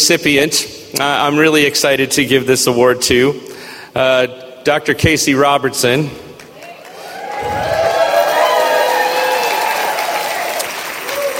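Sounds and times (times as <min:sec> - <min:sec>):
speech: 0:00.0 - 0:06.2
audience applause: 0:06.6 - 0:11.3.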